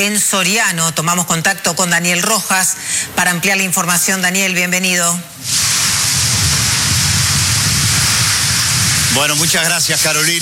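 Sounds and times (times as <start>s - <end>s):
speech: 0.0s - 5.7s, 9.1s - 10.4s
heavy rain: 0.0s - 10.4s
low rumbling roar of wind: 2.5s - 10.4s.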